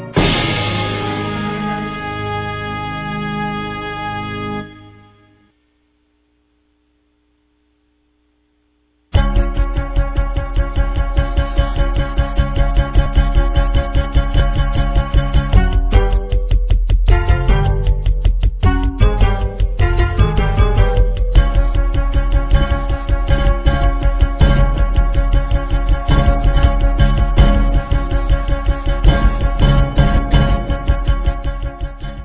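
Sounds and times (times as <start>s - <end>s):
drum solo: 0.2s - 2.2s, 9.2s - 32.2s.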